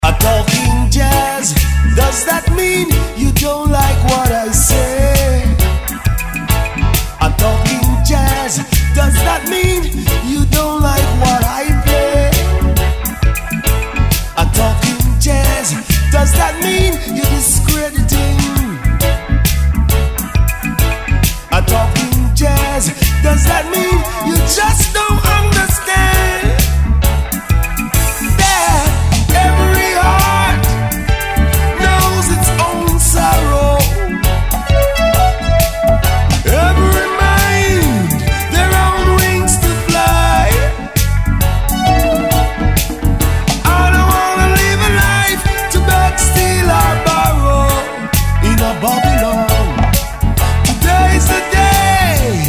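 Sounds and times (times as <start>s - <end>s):
jazz music: 0.0s - 52.4s.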